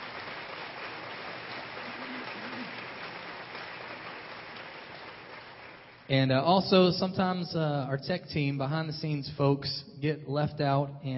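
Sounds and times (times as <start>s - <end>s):
crowd applauding: 0.0s - 6.1s
speech: 6.1s - 11.1s.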